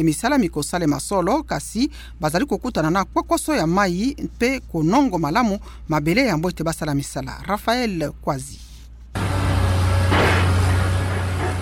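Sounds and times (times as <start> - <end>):
speech: 0.0 - 8.6
construction machinery at the Sosimat site, So Mouton, Kinshasa: 9.1 - 11.5.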